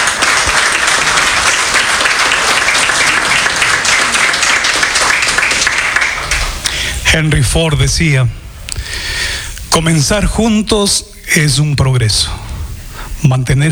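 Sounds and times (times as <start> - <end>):
applause: 0.0 - 6.8
speech: 7.1 - 8.4, 9.8 - 12.4, 13.2 - 13.7.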